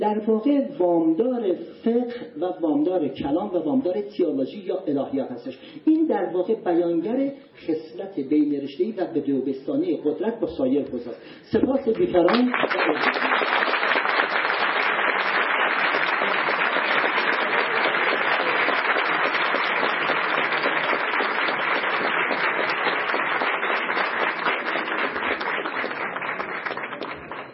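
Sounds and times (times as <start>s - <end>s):
speech: 0.0s - 13.7s
audience applause: 12.3s - 27.5s.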